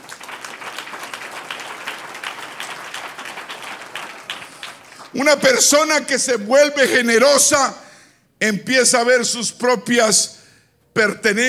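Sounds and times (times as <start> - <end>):
crowd applauding: 0.0 - 5.7
speech: 5.1 - 7.8, 8.4 - 10.4, 11.0 - 11.4.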